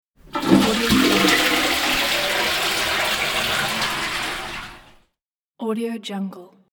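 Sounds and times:
toilet flushing: 0:00.2 - 0:05.0.

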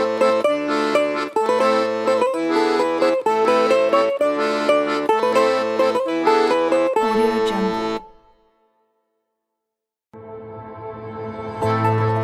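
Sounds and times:
Russian dance music: 0:00.0 - 0:08.3.

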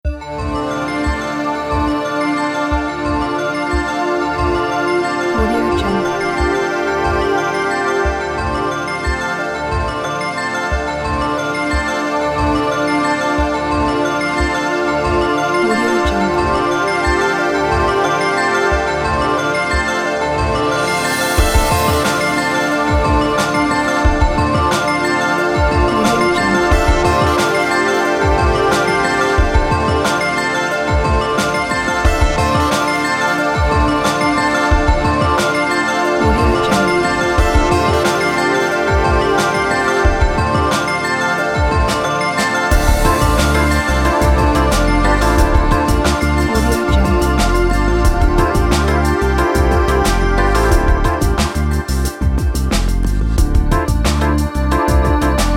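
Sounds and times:
trip hop ambient music: 0:00.1 - 0:55.5.

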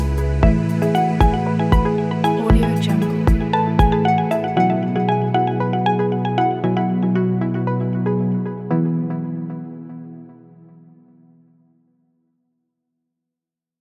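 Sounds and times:
inspiring upbeat uplifting corporate music: 0:00.0 - 0:08.4.

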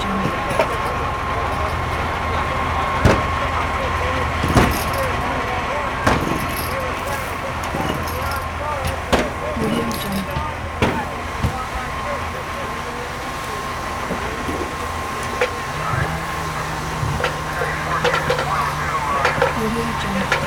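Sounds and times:
trucks idling at an exterior fire scene: 0:00.0 - 0:20.4.

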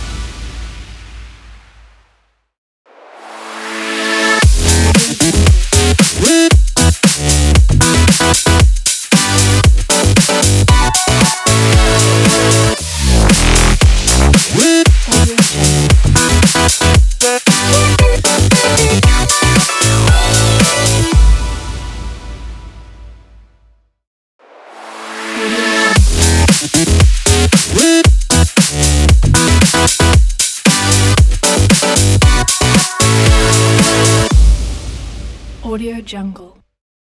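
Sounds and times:
dubstep music: 0:03.7 - 0:22.0, 0:25.1 - 0:34.6.

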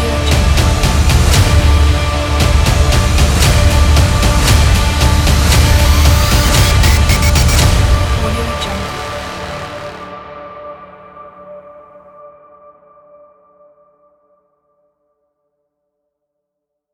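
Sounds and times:
cinematic trailer music: 0:00.0 - 0:10.8.

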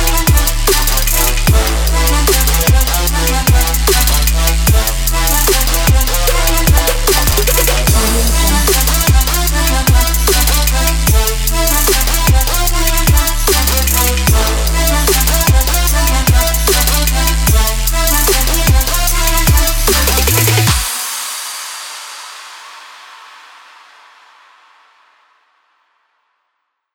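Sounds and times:
trap beat: 0:00.0 - 0:20.9.

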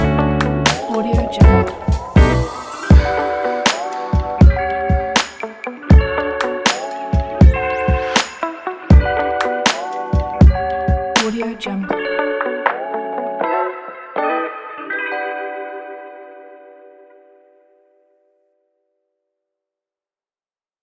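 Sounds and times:
R&B soul type beat: 0:00.0 - 0:13.6.

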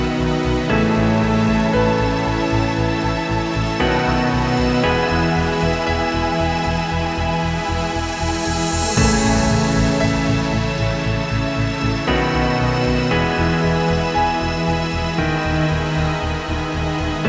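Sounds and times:
ambient documentary soundscape: 0:00.0 - 0:17.2.

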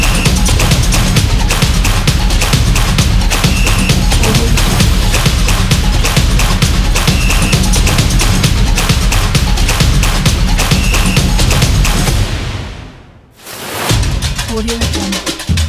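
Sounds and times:
latin dance music: 0:00.0 - 0:12.2, 0:13.7 - 0:15.6.

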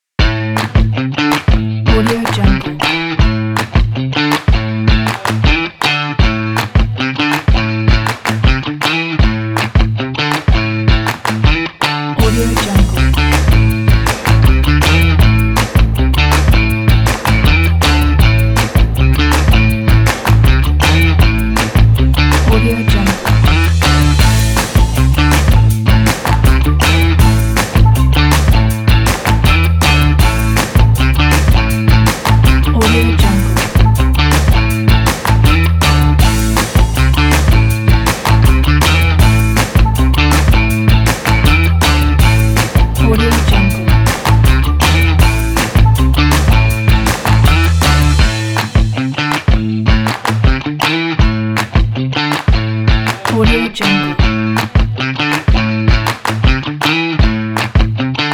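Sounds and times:
funk music: 0:00.2 - 0:58.3.

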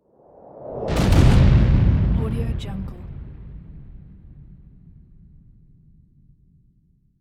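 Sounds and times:
missile exploding: 0:00.8 - 0:06.1.

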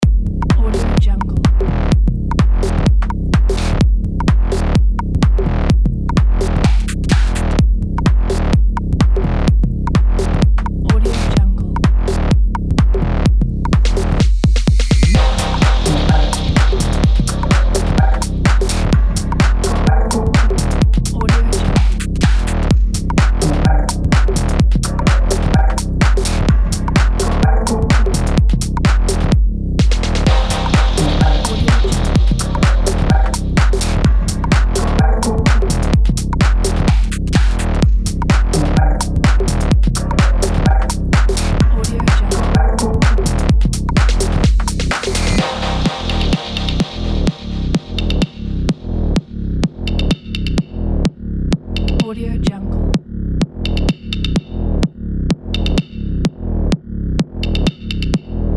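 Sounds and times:
dark minimal techno: 0:00.0 - 0:58.5.

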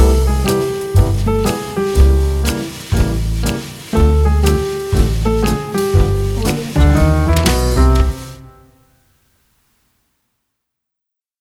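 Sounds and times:
retro comedy swing jazz piano: 0:00.0 - 0:08.8.

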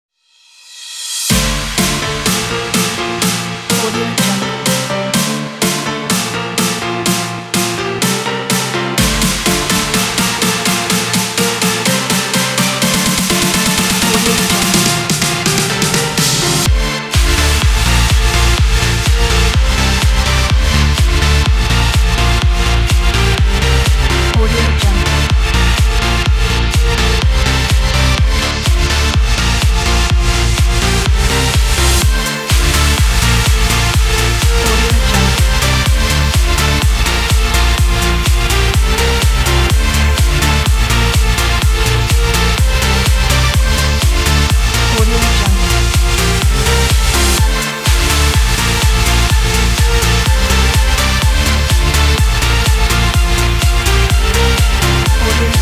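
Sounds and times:
summer energy dance music: 0:01.1 - 0:55.6.

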